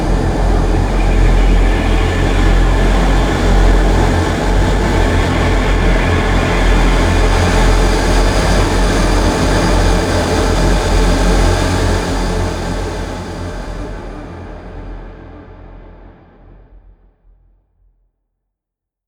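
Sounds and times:
droning howl: 0.0s - 14.8s.

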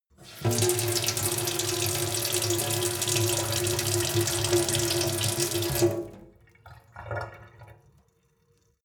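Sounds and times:
medium water flow from a sink: 0.1s - 8.8s.

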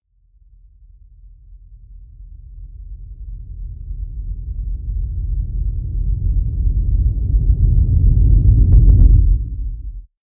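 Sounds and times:
deep distorted noise synth rumble: 5.8s - 10.0s.

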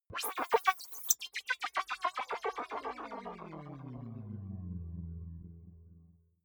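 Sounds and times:
alien communication sounds: 0.1s - 4.6s.

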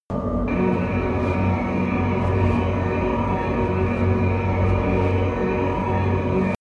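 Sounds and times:
promo synth pad: 0.1s - 6.5s.

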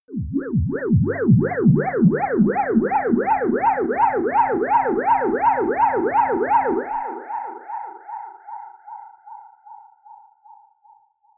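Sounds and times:
ululation: 0.1s - 7.2s.

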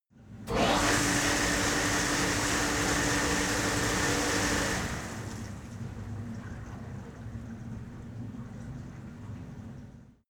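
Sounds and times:
cleaning machine starting, running and stopping: 0.5s - 6.0s.

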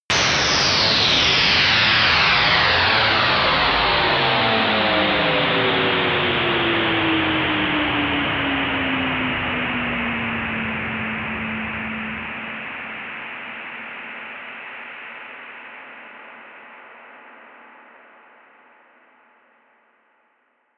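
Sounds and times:
huge slow down effect: 0.1s - 14.2s.

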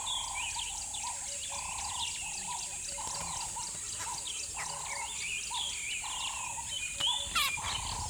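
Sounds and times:
soft dawn birds chirping at a river bed: 0.1s - 8.0s.

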